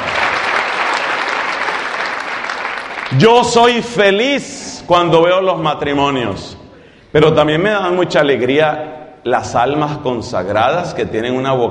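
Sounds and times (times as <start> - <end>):
audience applause: 0.0 - 3.6
speech: 3.1 - 11.6.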